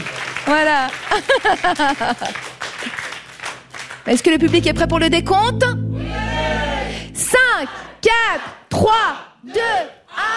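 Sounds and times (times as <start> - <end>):
audience clapping at an improvised theatre show: 0.0 - 4.7
speech: 0.5 - 3.0, 4.0 - 5.8, 7.3 - 10.3.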